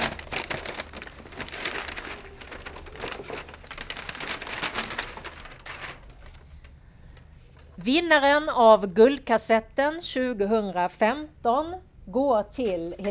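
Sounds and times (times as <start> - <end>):
rustling: 0.0 - 7.9
speech: 7.8 - 13.0.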